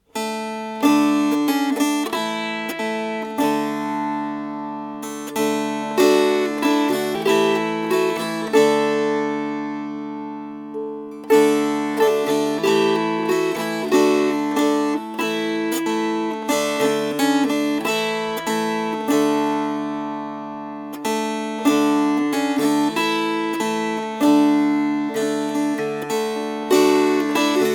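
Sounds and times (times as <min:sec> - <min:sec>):
strummed strings: 0:00.0 - 0:27.7.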